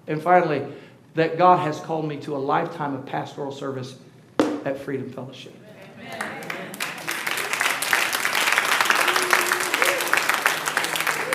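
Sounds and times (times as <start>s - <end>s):
speech: 0.1s - 6.4s
audience applause: 6.1s - 11.3s.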